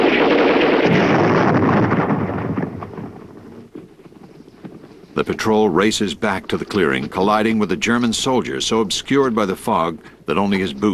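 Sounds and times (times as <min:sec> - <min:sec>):
grenade explosion in a foggy wartime firefight: 0:00.0 - 0:03.8
sharp smaller crack: 0:00.0 - 0:07.4
speech: 0:05.2 - 0:10.9.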